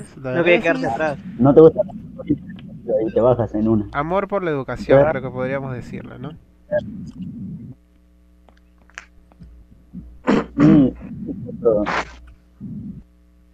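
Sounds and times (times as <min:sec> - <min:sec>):
speech: 0:00.2 - 0:07.3, 0:10.6 - 0:12.8
person sneezing: 0:10.2 - 0:12.2.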